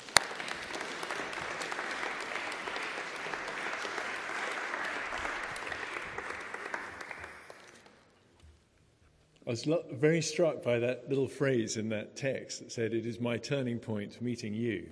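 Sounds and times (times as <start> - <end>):
round of applause: 0.0 - 8.1
speech: 9.5 - 14.9.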